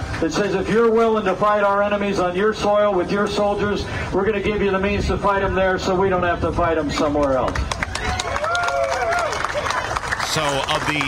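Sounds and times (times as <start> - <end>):
speech: 0.2 - 7.8, 10.3 - 11.0
sparse audience clapping: 7.0 - 11.0.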